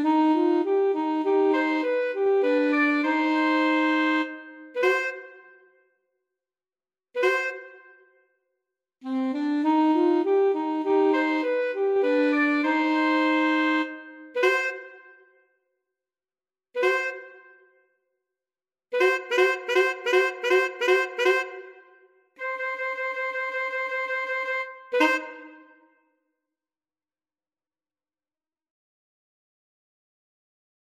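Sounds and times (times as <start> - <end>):
alto sax trio: 0.0 - 5.2, 9.0 - 14.9, 19.0 - 21.7, 22.4 - 25.7.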